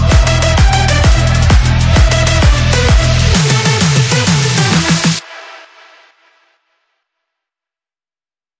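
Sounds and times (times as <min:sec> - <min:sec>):
big room music: 0:00.0 - 0:06.6.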